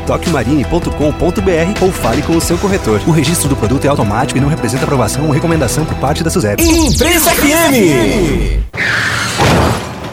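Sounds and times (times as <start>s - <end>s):
speech: 0.1s - 9.7s
car crash: 9.3s - 10.1s.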